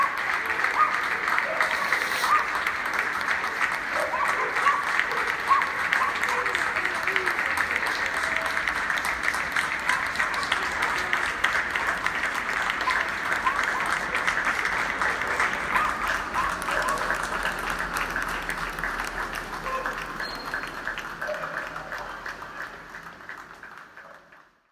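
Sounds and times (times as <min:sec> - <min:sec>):
people applauding in Argentina during covid: 0:00.0 - 0:24.6.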